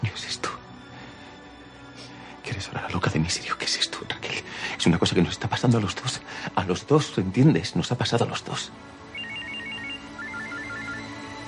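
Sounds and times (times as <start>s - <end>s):
speech: 2.6s - 9.0s
telephone ringing: 9.2s - 11.4s.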